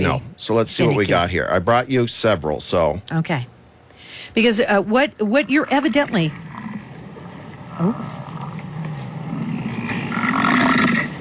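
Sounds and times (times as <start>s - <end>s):
speech: 0.0s - 3.5s, 4.2s - 6.5s, 7.8s - 8.2s
bison bellowing in rut: 6.5s - 11.1s.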